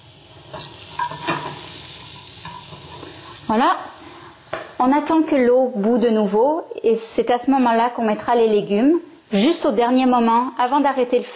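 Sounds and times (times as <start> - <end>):
scraping strokes in a pan while stirring mushrooms: 0.0 - 4.6
mushrooms searing in a hot pan: 0.0 - 6.6, 7.3 - 11.3
speech: 3.5 - 4.0, 4.8 - 11.3.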